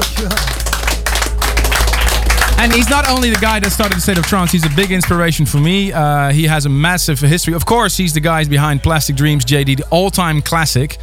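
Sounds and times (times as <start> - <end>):
round of applause: 0.0 - 5.7
speech: 2.6 - 11.0.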